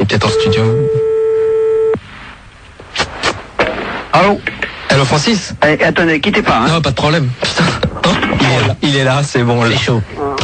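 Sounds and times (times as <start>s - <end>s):
speech: 0.2s - 1.0s, 4.2s - 10.3s
telephone line tone after dialing a number: 0.2s - 2.0s.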